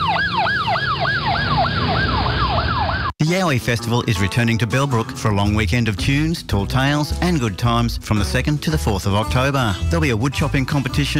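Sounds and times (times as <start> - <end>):
low traffic rumble: 0.0 - 3.1
police siren in fast yelp pattern: 0.0 - 3.2
speech: 3.3 - 11.1.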